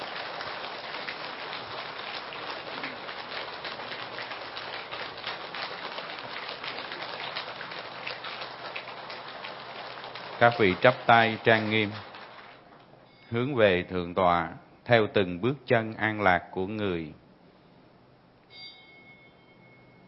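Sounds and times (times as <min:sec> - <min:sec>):
applause: 0:00.0 - 0:12.7
speech: 0:10.4 - 0:12.1, 0:13.3 - 0:17.2.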